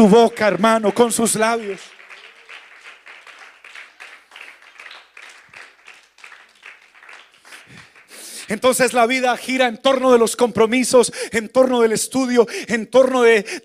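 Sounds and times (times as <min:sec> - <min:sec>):
speech: 0:00.0 - 0:02.0, 0:08.5 - 0:13.6
audience applause: 0:00.0 - 0:08.6.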